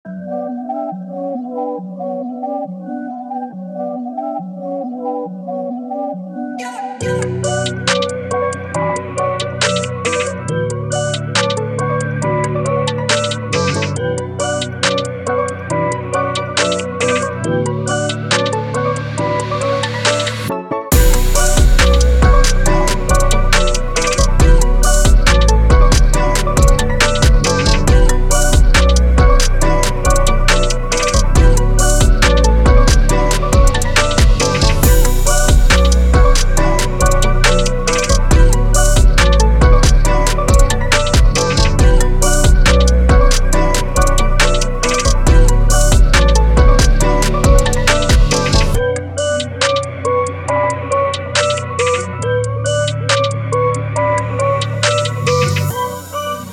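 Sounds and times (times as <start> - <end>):
trap beat: 6.6 - 56.5.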